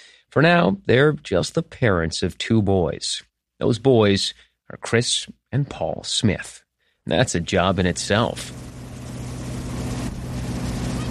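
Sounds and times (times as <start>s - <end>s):
speech: 0.4s - 8.7s
motorboat engine towing water skiers on a lake: 7.6s - 11.1s
wash of spray and water: 7.9s - 11.1s.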